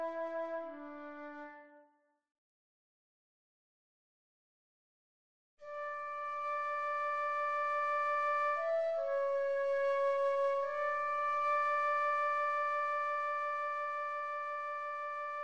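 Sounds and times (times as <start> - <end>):
flute playing: 0.0 - 1.9, 5.7 - 15.4.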